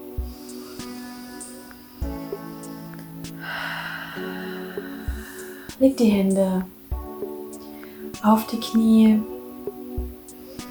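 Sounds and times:
deep breath in and out: 3.3s - 5.8s
speech: 5.8s - 6.8s, 8.2s - 9.3s.

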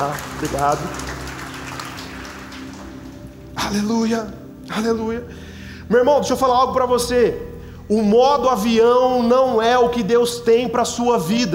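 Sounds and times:
speech: 0.0s - 1.1s, 3.7s - 11.5s
audience applause: 0.0s - 3.6s.

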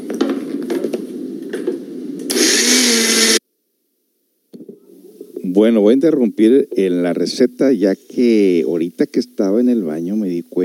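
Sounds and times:
blender blending tomatoes, onion and garlic: 2.3s - 3.4s
speech: 5.5s - 10.6s.

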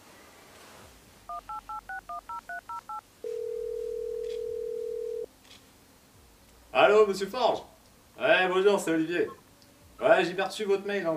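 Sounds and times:
steady telephone tone: 1.3s - 5.3s
speech: 6.8s - 9.4s, 10.0s - 11.1s.

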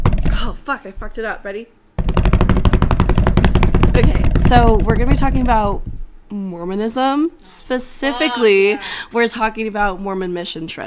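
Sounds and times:
speech: 0.5s - 2.7s, 4.0s - 10.8s
rapid drumroll: 2.0s - 6.0s.

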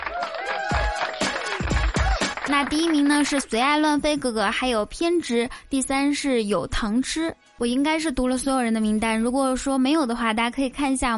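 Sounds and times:
applause: 0.0s - 3.8s
speech: 2.5s - 11.1s.

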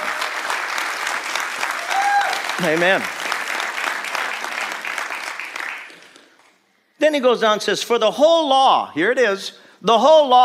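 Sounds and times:
crowd applause: 0.0s - 6.4s
speech: 2.6s - 3.2s, 7.0s - 10.4s.

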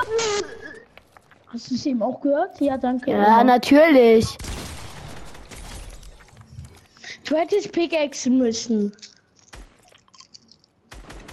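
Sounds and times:
speech: 1.5s - 4.5s, 7.3s - 9.2s
chewing chocolate candy: 8.9s - 10.8s.

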